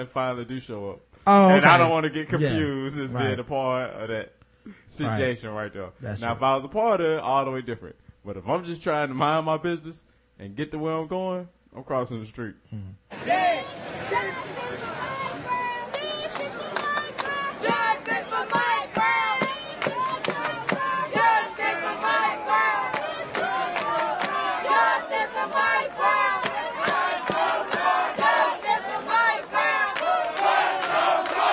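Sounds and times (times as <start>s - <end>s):
speech: 0.0s - 14.3s
protest crowd chanting and yelling: 13.1s - 31.5s
sharp claps: 14.3s - 21.7s, 22.8s - 24.4s, 25.5s - 31.5s.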